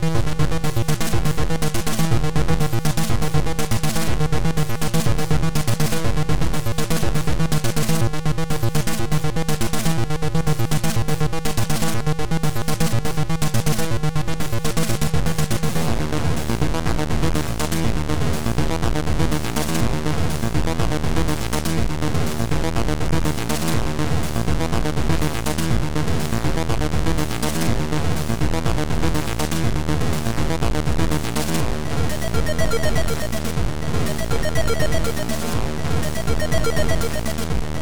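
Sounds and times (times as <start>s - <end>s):
trance music: 0.2s - 37.7s.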